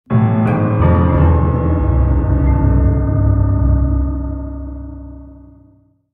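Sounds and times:
dark jingle: 0.1s - 6.0s.

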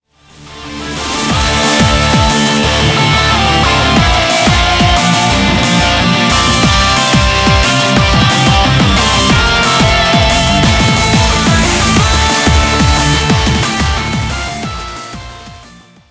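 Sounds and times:
background music: 0.1s - 16.0s.

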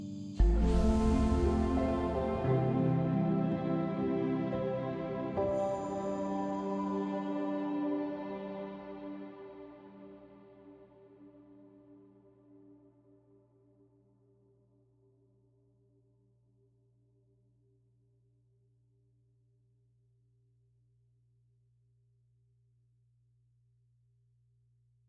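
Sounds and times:
cave music: 0.4s - 9.5s.

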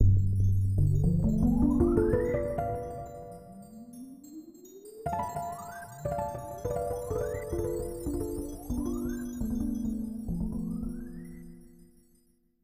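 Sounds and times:
harp music: 1.0s - 3.6s, 5.1s - 11.3s.

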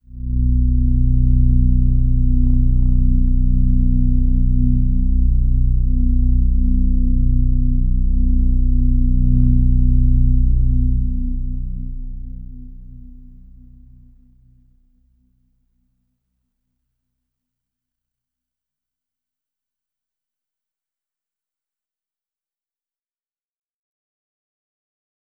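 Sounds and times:
overlay drone: 0.0s - 14.5s.

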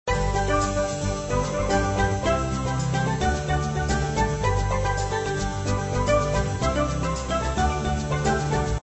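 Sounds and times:
end music loop: 0.1s - 8.8s.

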